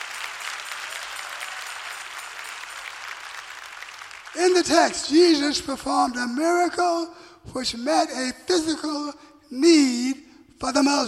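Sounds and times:
audience clapping hands: 0.0 - 5.4
speech: 4.4 - 11.0.

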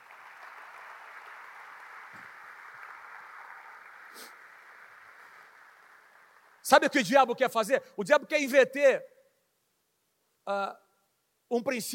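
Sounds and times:
audience applause: 0.0 - 6.8
speech: 4.2 - 4.4, 6.7 - 9.1, 10.5 - 10.8, 11.5 - 11.9.

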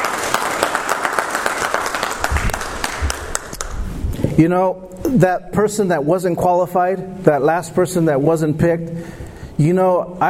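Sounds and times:
audience clapping hands: 0.0 - 4.0
speech: 4.4 - 10.2.

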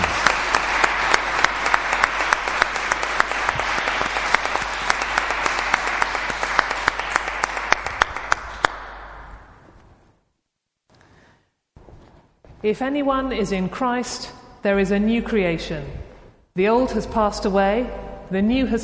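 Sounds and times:
audience applause: 0.0 - 9.5
speech: 12.7 - 18.8.

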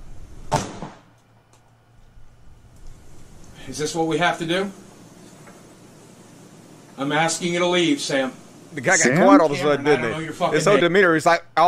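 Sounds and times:
warning shot fired by a homeowner: 0.5 - 1.1
speech: 3.7 - 4.8, 7.0 - 11.6.

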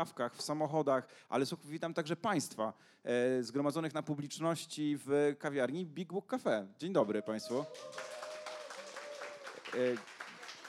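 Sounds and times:
speech: 0.0 - 8.2, 9.7 - 10.1
small indoor crowd clapping in a cafe: 7.4 - 10.6.

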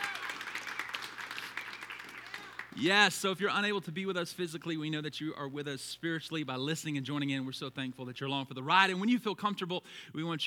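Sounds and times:
church congregation applauding: 0.0 - 2.8
speech: 2.8 - 10.4.

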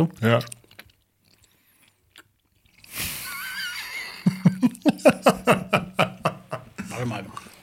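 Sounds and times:
speech: 0.0 - 0.6, 5.0 - 6.1
crunchy snack chewing: 0.2 - 3.0
laughter: 3.0 - 7.2.

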